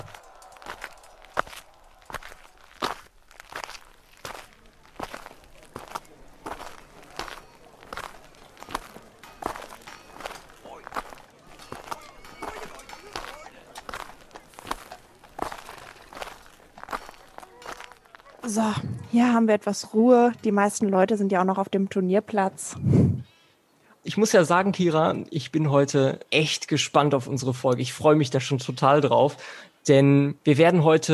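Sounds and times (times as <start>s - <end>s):
murmur of voices at a medieval fair: 0.0s - 3.0s, 3.6s - 19.2s
footsteps walking away from a medieval fair's tournament ground: 0.0s - 19.0s
speech: 18.5s - 23.2s, 24.2s - 31.1s.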